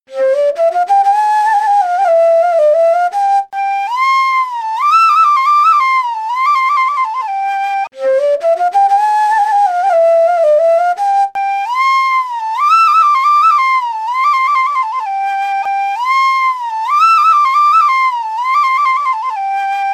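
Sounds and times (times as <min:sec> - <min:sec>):
flute: 0:00.1 - 0:19.9.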